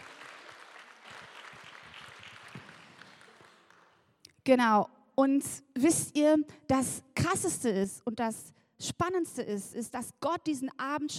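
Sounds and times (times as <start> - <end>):
audience applause: 0.0 - 4.0
speech: 4.5 - 11.1.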